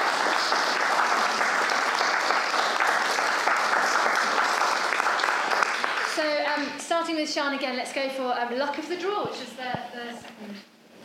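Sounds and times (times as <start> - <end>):
audience applause: 0.0 - 6.6
speech: 7.1 - 11.0.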